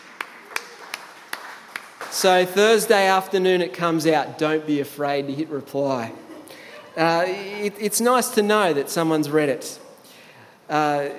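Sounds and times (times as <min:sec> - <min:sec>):
sharp separate hand claps: 0:00.0 - 0:02.3
speech: 0:02.2 - 0:06.2, 0:07.0 - 0:09.8, 0:10.7 - 0:11.1.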